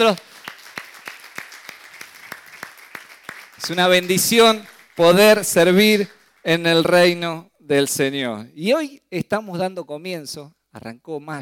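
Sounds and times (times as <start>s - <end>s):
speech: 0.0s - 0.3s, 3.7s - 11.3s
hand claps during a church service on Workers' Day: 0.0s - 5.2s.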